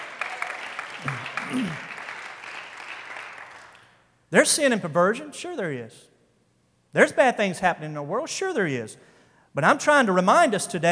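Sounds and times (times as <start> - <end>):
audience clapping hands: 0.0 - 4.0
speech: 1.5 - 1.9, 4.3 - 6.1, 6.9 - 10.9.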